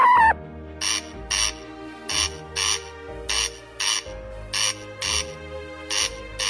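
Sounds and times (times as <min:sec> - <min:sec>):
male corncrake's rasping two-part call: 0:00.0 - 0:05.3.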